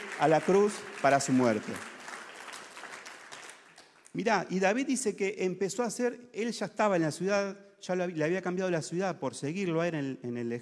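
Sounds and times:
audience applause: 0:00.0 - 0:04.0
speech: 0:00.2 - 0:01.9, 0:04.2 - 0:10.5.

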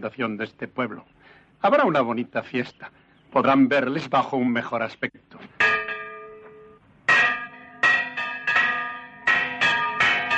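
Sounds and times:
speech: 0:00.0 - 0:05.6
village church bell ringing: 0:05.6 - 0:10.3.

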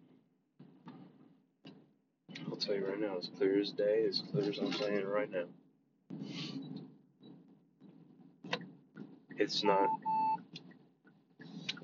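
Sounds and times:
speech: 0:02.6 - 0:05.6, 0:09.4 - 0:10.1
vehicle beeping: 0:09.8 - 0:10.4.

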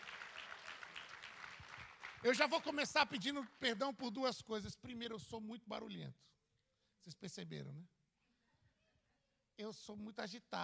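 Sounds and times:
audience applause: 0:00.0 - 0:03.8
speech: 0:02.2 - 0:06.4, 0:07.0 - 0:08.0, 0:09.6 - 0:10.6.

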